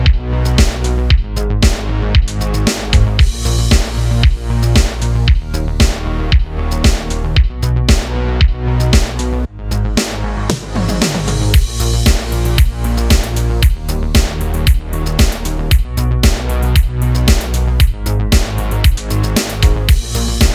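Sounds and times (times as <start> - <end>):
retro music bed in D sharp minor: 0.0 - 20.5.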